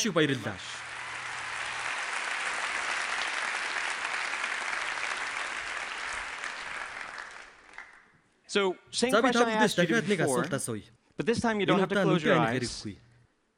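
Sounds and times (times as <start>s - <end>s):
speech: 0.0s - 0.8s, 8.5s - 13.0s
audience applause at a live talk: 0.0s - 8.1s.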